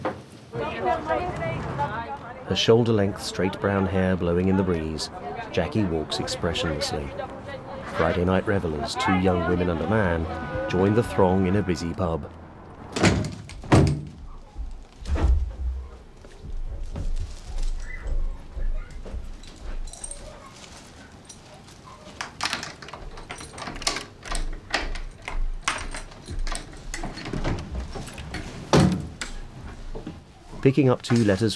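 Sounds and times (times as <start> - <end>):
speech: 0.8 - 7.4, 8.0 - 12.4, 30.7 - 31.5
flat door unlocking and opening: 12.8 - 16.0, 17.6 - 29.5.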